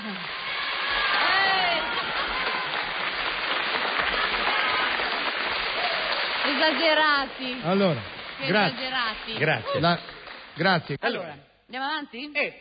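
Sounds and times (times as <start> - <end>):
people cheering and whooping: 0.0 - 6.6
audience applause: 0.0 - 10.9
speech: 6.6 - 12.6.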